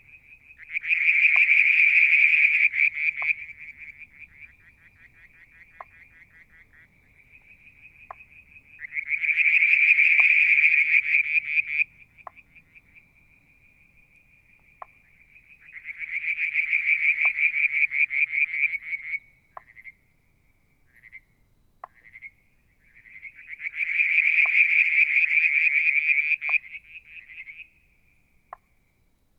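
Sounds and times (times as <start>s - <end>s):
frog chorus: 0.0s - 28.8s.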